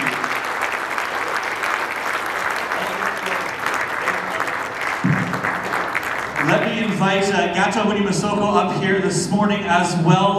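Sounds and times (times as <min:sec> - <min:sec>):
audience applause: 0:00.0 - 0:07.2
speech: 0:07.0 - 0:10.3.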